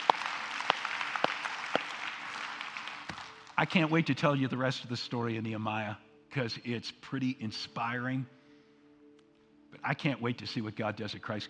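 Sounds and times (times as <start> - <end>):
scattered hand claps from an audience: 0.0 - 3.8
faint room hiss: 0.0 - 11.4
speech: 3.6 - 8.4, 9.8 - 11.4.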